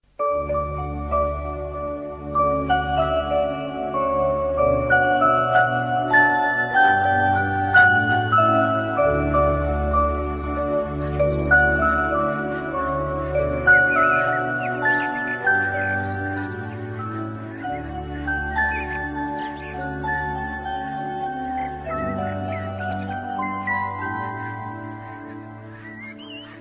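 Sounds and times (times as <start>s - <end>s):
Indian background music: 0.0s - 26.5s.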